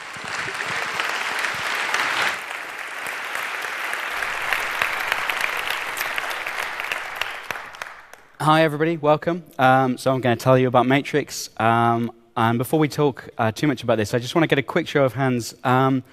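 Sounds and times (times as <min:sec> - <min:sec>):
audience applause: 0:00.0 - 0:08.4
speech: 0:08.4 - 0:16.1.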